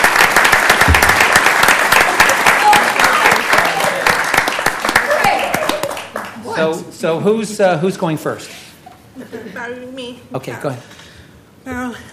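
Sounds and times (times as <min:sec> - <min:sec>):
audience applause: 0:00.0 - 0:06.4
speech: 0:06.6 - 0:08.6, 0:09.2 - 0:11.0, 0:11.6 - 0:12.1.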